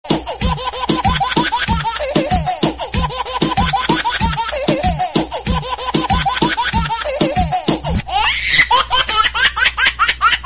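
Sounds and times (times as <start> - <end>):
background music: 0.0 - 8.0
person laughing: 0.1 - 10.4.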